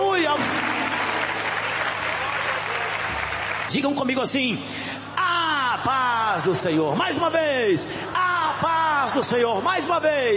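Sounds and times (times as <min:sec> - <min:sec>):
church congregation applauding at a Pentecostal service: 0:00.0 - 0:04.5
speech: 0:03.7 - 0:05.0, 0:05.8 - 0:10.3.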